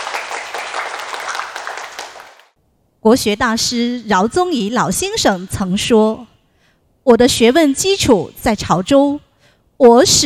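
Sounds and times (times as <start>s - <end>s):
applause: 0.0s - 2.6s
speech: 3.0s - 6.3s, 7.1s - 9.2s, 9.8s - 10.2s.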